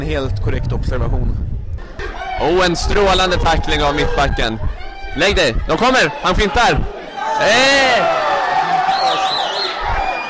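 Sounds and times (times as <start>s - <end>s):
speech: 0.1s - 1.5s, 2.4s - 8.2s
football stadium crowd roaring and whooping: 1.8s - 10.2s
whistle-like cheer: 8.7s - 10.2s.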